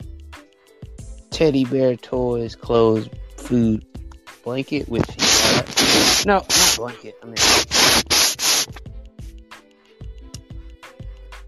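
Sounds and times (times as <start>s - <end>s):
speech: 1.4s - 7.8s
scrubbing noise on phone: 5.0s - 8.8s.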